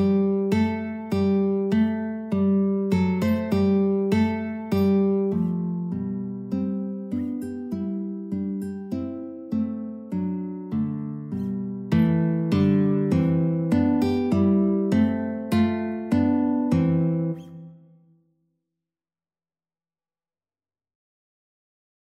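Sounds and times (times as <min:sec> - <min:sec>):
three guitars playing a classical piece: 0:00.0 - 0:17.6.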